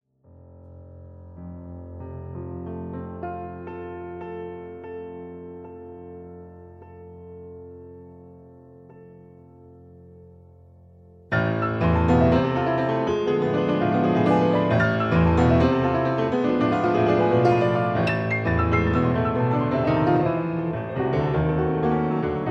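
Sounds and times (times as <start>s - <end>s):
piano: 0.2s - 22.4s.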